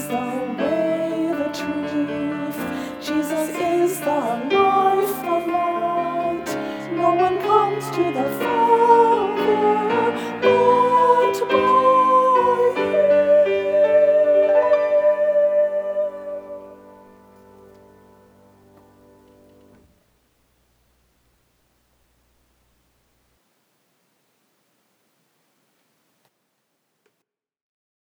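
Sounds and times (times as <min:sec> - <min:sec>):
vocals: 0:00.0 - 0:20.0.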